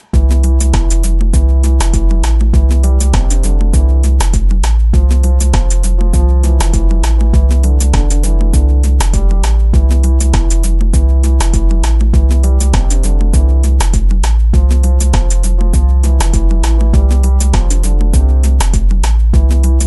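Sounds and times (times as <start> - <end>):
chill tech music: 0.1 - 19.8.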